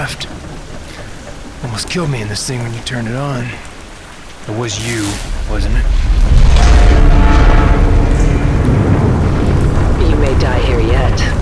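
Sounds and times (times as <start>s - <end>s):
speech: 0.0s - 0.3s, 1.7s - 3.7s, 4.5s - 7.0s
strained metallic groans of breaking structure: 4.7s - 10.5s
explosive disconnects firing, platform breaking apart: 4.8s - 10.0s.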